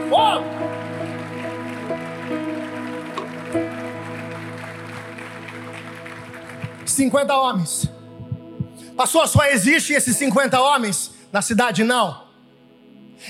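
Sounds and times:
audience applause: 0.0 - 7.4
speech: 7.0 - 8.0, 9.0 - 12.2.

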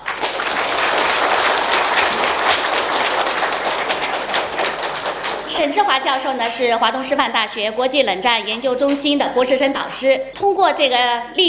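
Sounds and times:
warm audience applause: 0.0 - 6.2
speech: 5.6 - 11.4.

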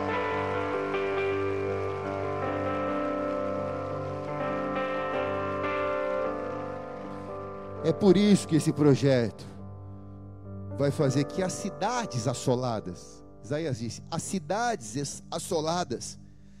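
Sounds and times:
audience applause: 0.0 - 8.6
speech: 7.8 - 9.5, 10.8 - 16.2.

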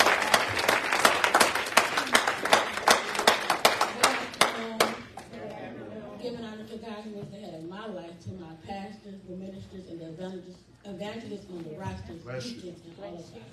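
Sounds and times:
audience hand clapping: 0.0 - 5.2
speech: 11.0 - 13.5.

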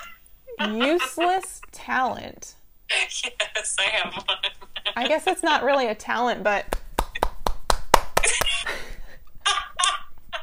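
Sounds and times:
people laughing: 0.0 - 1.8, 2.9 - 6.0, 8.2 - 10.4
speech: 0.6 - 6.8
palm clapping: 6.7 - 8.7.

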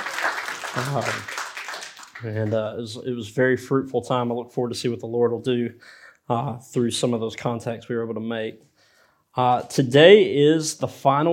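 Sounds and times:
audience hand clap of praise: 0.0 - 2.6
speech: 0.8 - 1.4, 2.2 - 8.7, 9.3 - 11.3.

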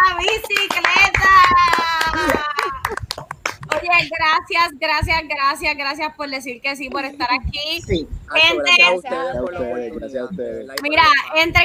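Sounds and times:
applause, hands clapping: 0.0 - 4.1
speech: 4.2 - 11.6.

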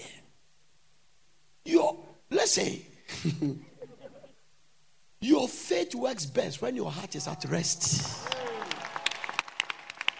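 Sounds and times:
speech: 2.5 - 3.7, 5.2 - 8.5
audience clapping: 7.6 - 10.1.

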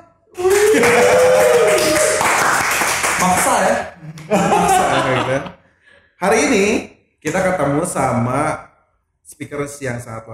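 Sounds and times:
crowd clapping: 0.4 - 3.8
speech: 3.5 - 5.6, 6.2 - 8.7, 9.3 - 10.3
laughter: 4.0 - 5.6.

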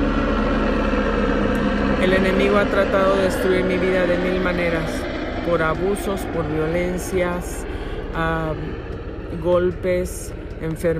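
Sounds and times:
helicopter passing: 0.0 - 10.9
speech: 2.0 - 10.9.

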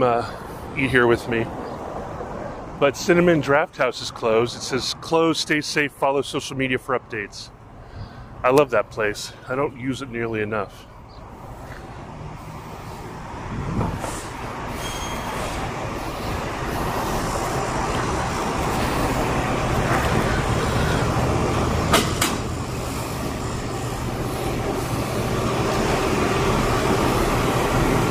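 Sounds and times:
speech: 0.0 - 1.6, 2.8 - 7.6, 8.4 - 10.9
heavy diesel trucks passing in street traffic: 0.0 - 28.1
sharp clanks: 21.9 - 22.5.

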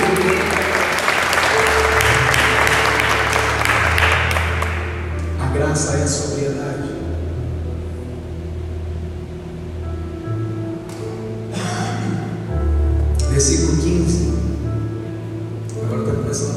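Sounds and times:
audience applause: 0.0 - 5.1
low sustained instrumental hum: 0.0 - 16.5.

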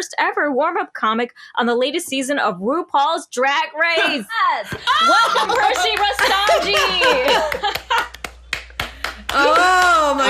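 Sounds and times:
speech: 0.0 - 7.8, 9.4 - 10.2
laughter: 4.0 - 8.2
applause: 5.5 - 10.2.

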